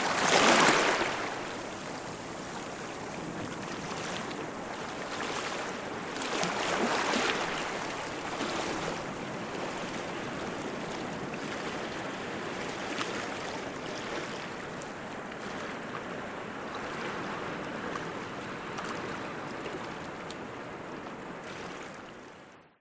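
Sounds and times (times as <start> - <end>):
distant surf: 0.0 - 21.4
small waves in rock pools: 0.0 - 22.7.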